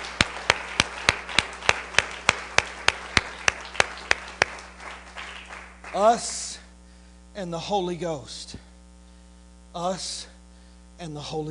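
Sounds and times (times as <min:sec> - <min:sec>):
audience clapping hands: 0:00.0 - 0:06.4
speech: 0:06.0 - 0:06.4, 0:07.4 - 0:08.7, 0:09.8 - 0:10.3, 0:11.0 - 0:11.4.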